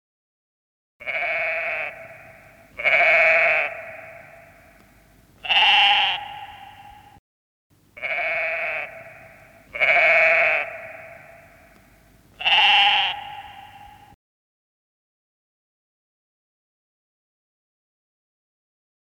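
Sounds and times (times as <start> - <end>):
sheep bleating: 1.0 - 4.8, 5.4 - 7.1, 8.0 - 14.2.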